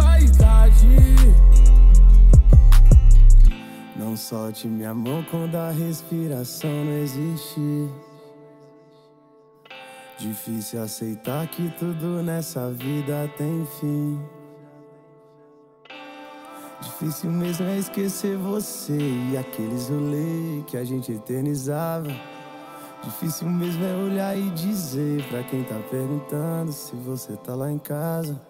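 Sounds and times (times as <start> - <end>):
deep hip hop bass: 0.0 - 3.6.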